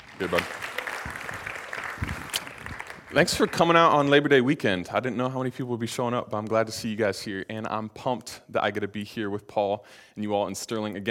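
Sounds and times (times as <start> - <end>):
audience applause: 0.0 - 4.1
speech: 0.2 - 1.2, 3.1 - 11.0.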